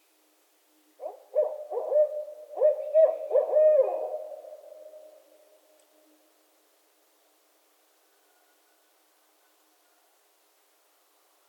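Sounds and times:
Barred owls calling together with hoots, cackles and wails: 1.0 - 5.2.

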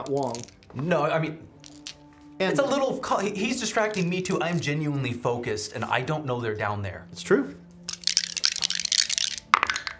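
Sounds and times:
several dice being rolled: 0.0 - 0.9, 1.6 - 2.2, 7.9 - 9.9
speech: 0.0 - 1.5, 2.4 - 7.6.

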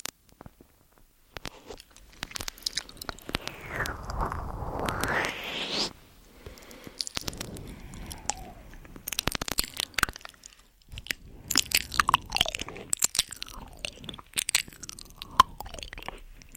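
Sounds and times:
wet, crunchy chewing and biting: 1.4 - 3.3, 6.7 - 16.5
mouth smacking: 1.4 - 5.9, 6.4 - 16.5.

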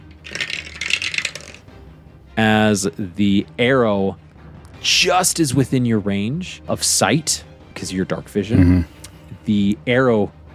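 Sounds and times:
dice clattering on a hard surface: 0.0 - 1.7
speech: 2.4 - 4.2, 4.8 - 10.5.

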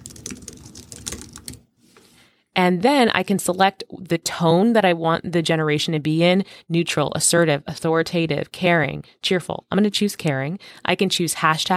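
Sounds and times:
computer keyboard typing a prompt into an AI writing tool: 0.0 - 1.6
speech: 2.6 - 11.7.

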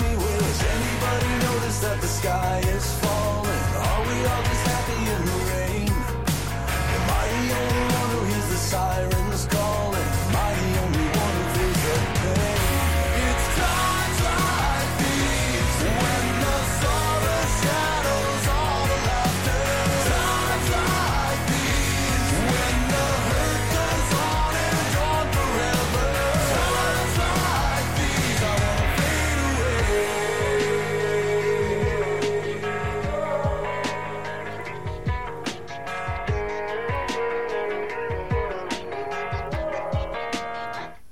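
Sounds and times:
heavy metal song with distorted guitars and pounding drums: 0.0 - 40.9.

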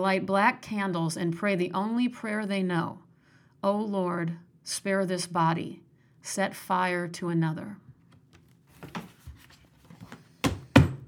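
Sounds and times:
speech: 0.0 - 3.0, 3.6 - 7.8
book banging against a wall: 8.4 - 11.0.

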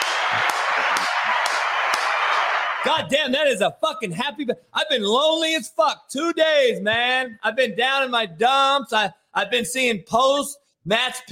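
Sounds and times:
hand claps: 0.0 - 3.1
speech: 2.8 - 11.2.

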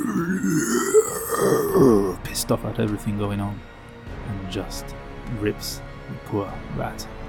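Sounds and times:
voice imitating a guttural roar: 0.0 - 2.2
speech: 1.8 - 7.2.

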